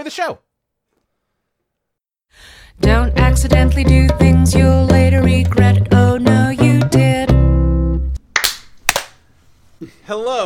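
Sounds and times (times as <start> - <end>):
speech: 0.0 - 0.5, 2.3 - 7.0, 10.1 - 10.4
sync clap at recording start: 8.3 - 9.2.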